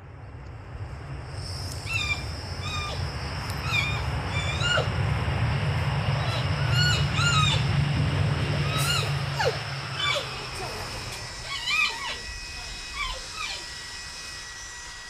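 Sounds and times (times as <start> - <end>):
caged animals howling: 1.5 - 15.0
caged animals growling: 1.8 - 13.9.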